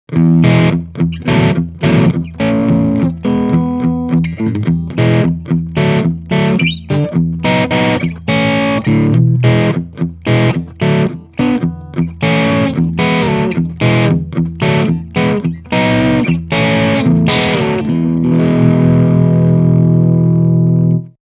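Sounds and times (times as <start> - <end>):
crunch rhythm: 0.1 - 20.9.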